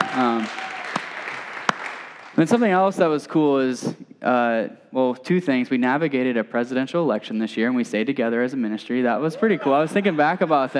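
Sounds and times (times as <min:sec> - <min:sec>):
audience clapping: 0:00.0 - 0:02.8
speech: 0:02.4 - 0:10.7
laughter: 0:09.2 - 0:10.7.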